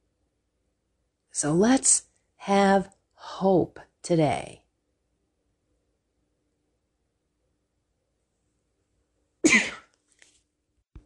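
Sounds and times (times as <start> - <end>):
speech: 1.4 - 4.6
throat clearing: 9.4 - 9.9.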